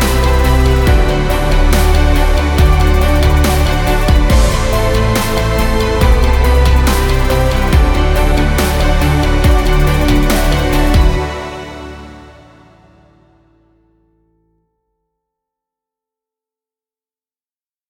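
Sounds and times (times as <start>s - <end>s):
inspirational technology music: 0.0s - 13.9s.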